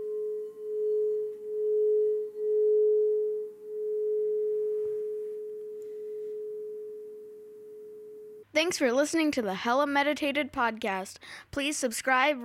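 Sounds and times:
meditation bell ringing: 0.0 - 8.4
speech: 8.6 - 12.4.

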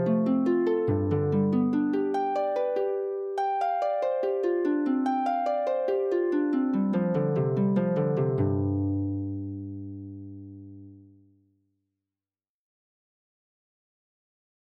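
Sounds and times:
harp: 0.0 - 11.2.

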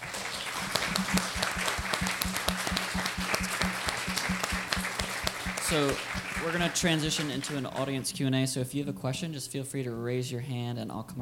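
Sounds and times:
audience at an author panel applauding: 0.0 - 8.1
speech: 5.7 - 11.2.

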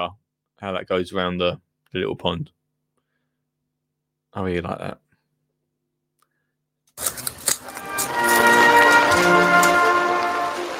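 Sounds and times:
speech: 0.0 - 2.6, 4.3 - 5.0
heavy rain: 7.6 - 10.7.

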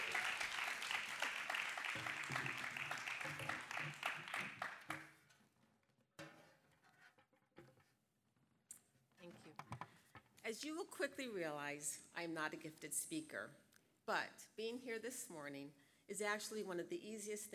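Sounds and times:
audience clapping: 0.0 - 5.2
speech: 2.0 - 4.8, 10.5 - 17.5.

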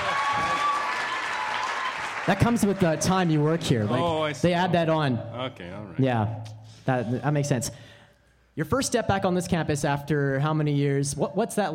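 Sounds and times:
audience applauding: 0.0 - 4.4
speech: 2.3 - 7.9, 8.6 - 11.7.

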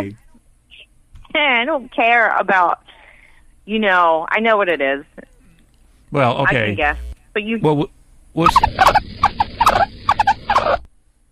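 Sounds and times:
speech: 0.0 - 0.2, 1.3 - 2.8, 3.7 - 5.3, 6.1 - 9.0
guinea pig squeaking: 8.4 - 10.9.

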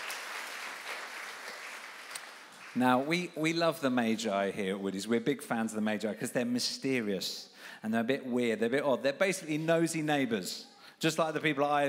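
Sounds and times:
audience applause: 0.0 - 3.1
speech: 2.8 - 11.8.

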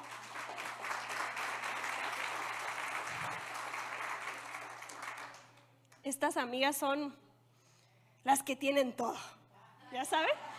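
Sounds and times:
audience clapping: 0.0 - 6.0
speech: 6.0 - 7.2, 8.2 - 10.4.

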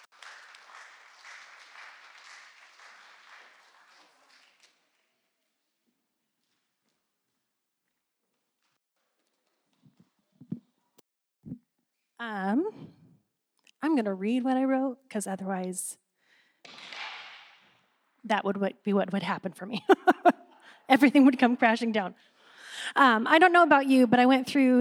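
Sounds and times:
audience applause at a Pentecost Sunday church gathering: 0.0 - 5.0
speech: 12.2 - 12.9, 13.8 - 16.0, 18.3 - 24.7
laughter: 19.7 - 21.6.

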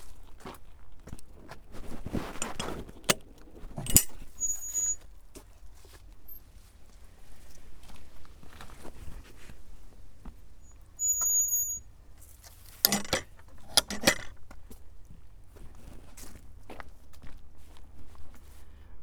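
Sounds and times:
wind on the South West Coast Path: 0.0 - 19.0
high chirps: 4.4 - 5.0.

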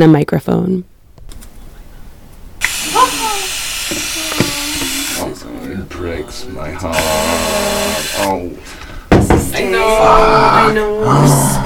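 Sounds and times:
speech: 0.0 - 0.9, 5.9 - 8.8, 9.6 - 11.6
spray bottle spraying water: 2.6 - 5.3, 7.0 - 8.3.

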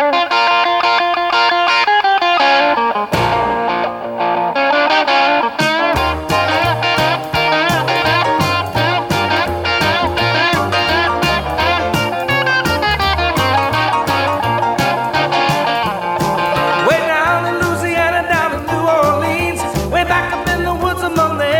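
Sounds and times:
distorted electric guitar: 0.0 - 21.5
rock song: 0.0 - 21.5
walking bass line: 3.1 - 4.1, 5.6 - 21.5.

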